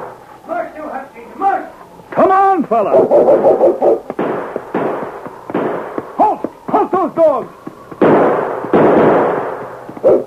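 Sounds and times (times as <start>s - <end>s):
speech: 2.7s - 3.9s, 7.0s - 7.6s
gunshots: 2.9s - 10.2s.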